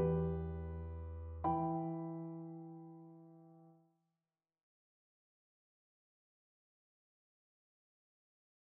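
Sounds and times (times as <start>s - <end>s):
piano dance piece: 0.0s - 3.2s.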